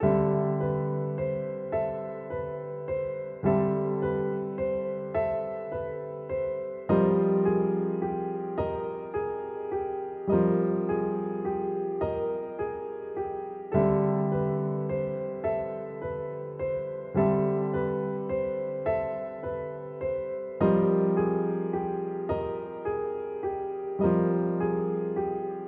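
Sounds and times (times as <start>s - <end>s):
piano: 0.0s - 25.6s.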